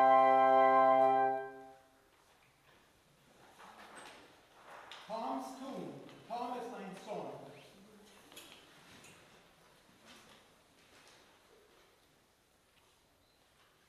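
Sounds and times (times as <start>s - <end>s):
simple waltz: 0.0s - 1.9s.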